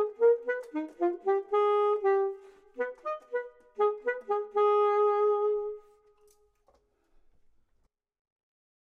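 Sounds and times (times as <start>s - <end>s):
clarinet: 0.0s - 6.5s
saxophone: 0.0s - 6.5s.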